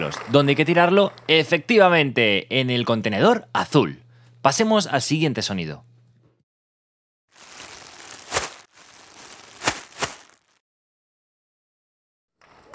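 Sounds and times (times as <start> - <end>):
speech: 0.0 - 5.9
plastic bag rustling: 7.3 - 10.6.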